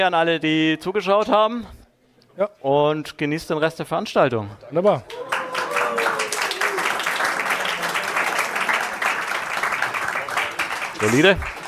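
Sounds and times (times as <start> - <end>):
speech: 0.0 - 1.8, 2.4 - 5.3, 11.0 - 11.6
audience applause: 5.1 - 11.6.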